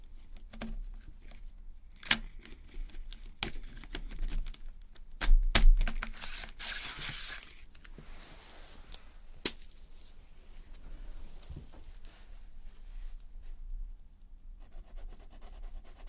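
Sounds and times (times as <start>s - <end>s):
faint low hum: 0.0s - 16.0s
colouring pencil on paper: 14.6s - 16.0s.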